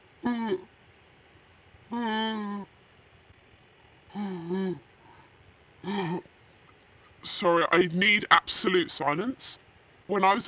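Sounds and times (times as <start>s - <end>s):
person yawning: 0.2s - 0.7s, 1.9s - 2.7s, 4.1s - 6.3s
speech: 0.2s - 0.7s, 1.9s - 2.7s, 7.4s - 10.4s.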